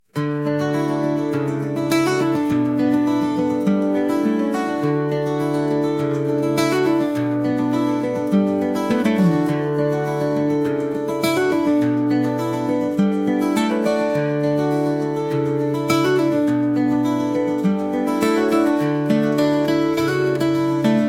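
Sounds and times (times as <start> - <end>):
intense acoustic guitar: 0.0 - 21.0.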